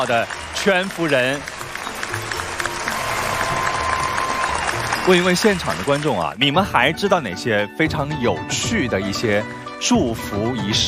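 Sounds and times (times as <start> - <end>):
speech: 0.0 - 2.3, 5.0 - 10.8
studio audience applause: 0.0 - 6.4.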